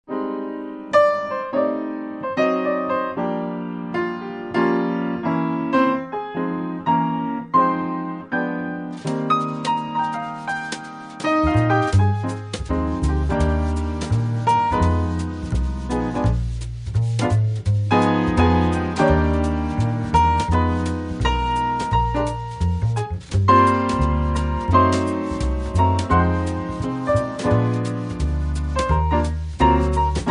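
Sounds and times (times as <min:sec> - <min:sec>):
piano trio playing: 0:00.1 - 0:30.2.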